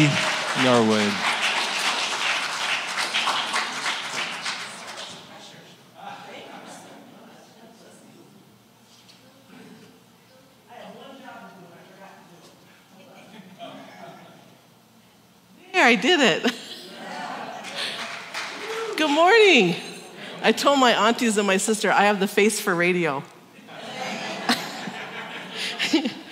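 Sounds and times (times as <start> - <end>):
speech: 0.0 - 1.3, 15.9 - 16.6, 19.2 - 23.3
audience applause: 0.0 - 5.3, 17.5 - 19.5
laughter: 12.9 - 14.6, 16.4 - 19.0, 23.6 - 26.2.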